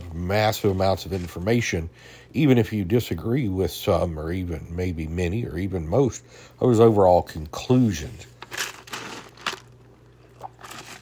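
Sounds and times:
speech: 0.3 - 8.3
person taking a drink of water: 9.8 - 11.0.

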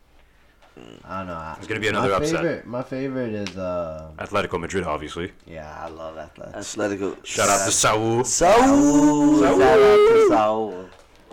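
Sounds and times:
speech: 0.8 - 11.0
man howling like a wolf: 8.4 - 10.6.

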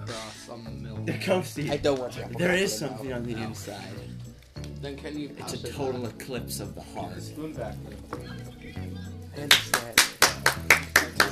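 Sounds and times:
speech: 0.1 - 4.2, 4.8 - 8.6, 9.4 - 9.9
one person clapping: 9.4 - 11.2.

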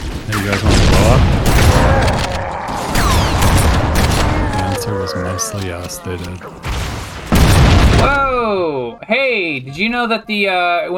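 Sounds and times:
video game gunfire in a hallway: 0.0 - 4.8, 6.6 - 8.4
speech: 0.3 - 1.4, 4.9 - 7.0, 8.0 - 10.9.

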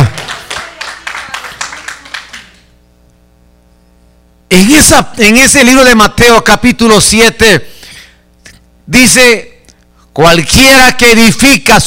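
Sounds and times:
audience clapping rhythmically: 0.0 - 2.7
speech: 4.5 - 7.7, 8.9 - 9.5, 10.2 - 11.8.

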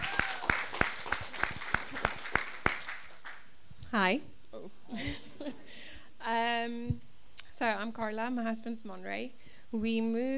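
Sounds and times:
applause: 0.0 - 3.5
speech: 3.9 - 5.2, 7.6 - 10.3.

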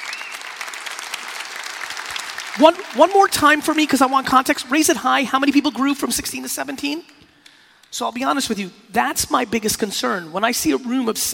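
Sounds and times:
audience applause: 0.0 - 4.8
speech: 2.6 - 7.2, 7.9 - 11.3.

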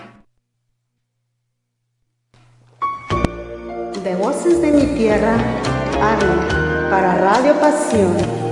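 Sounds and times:
country music: 2.8 - 8.5
speech: 4.0 - 8.4.

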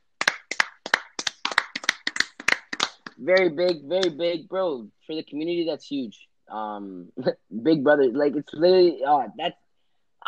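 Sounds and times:
crisp hand claps: 0.1 - 4.3
speech: 3.2 - 9.6.

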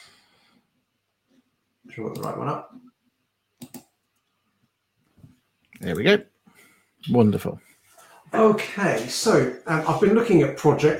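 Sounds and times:
speech: 1.9 - 3.0, 5.8 - 6.3, 7.0 - 7.7, 8.3 - 10.9
computer mouse clicks pressing the share-screen button: 2.1 - 2.4, 3.6 - 4.3
soft breathy noise: 6.4 - 7.0, 7.6 - 8.4.

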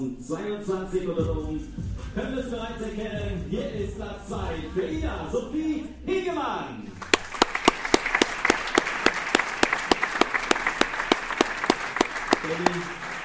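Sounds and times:
speech: 0.0 - 7.1, 12.4 - 13.0
audience applause: 7.0 - 13.2
louder evenly spaced individual claps: 7.0 - 13.2.

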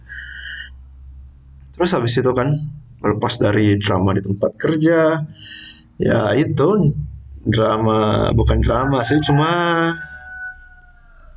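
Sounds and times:
speech: 1.8 - 10.1
rooster crowing: 8.5 - 11.3.

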